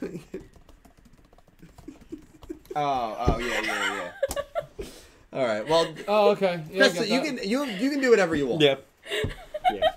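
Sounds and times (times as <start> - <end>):
speech: 0.0 - 0.4, 2.8 - 4.2, 5.3 - 9.4
typing on a computer keyboard: 0.2 - 2.8.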